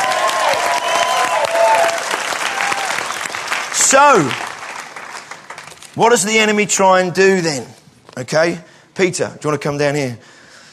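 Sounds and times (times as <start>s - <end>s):
audience cheering and clapping: 0.0s - 5.8s
speech: 3.9s - 4.4s, 6.0s - 10.4s.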